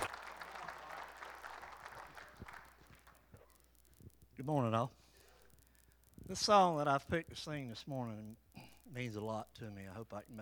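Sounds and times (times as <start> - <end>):
soft applause from a church congregation welcoming a singer: 0.0 - 3.6
speech: 4.4 - 5.0, 6.3 - 10.4.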